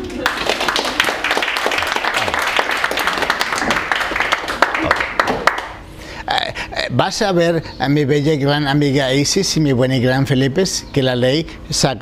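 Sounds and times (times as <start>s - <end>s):
audience applause: 0.0s - 5.8s
speech: 6.9s - 11.9s.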